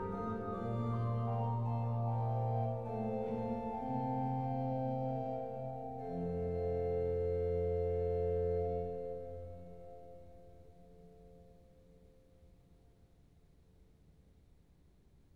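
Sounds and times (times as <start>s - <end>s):
organ fugue in F major: 0.0s - 10.4s.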